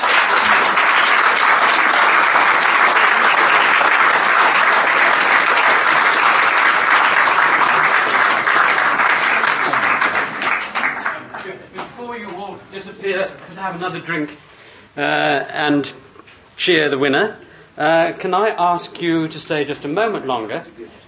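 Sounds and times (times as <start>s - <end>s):
audience applause: 0.0s - 11.6s
speech: 13.6s - 16.0s, 16.6s - 21.0s.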